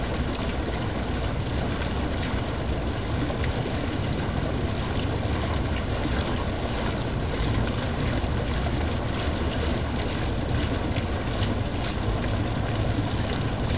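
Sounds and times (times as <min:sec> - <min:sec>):
fountain: 0:00.0 - 0:13.7.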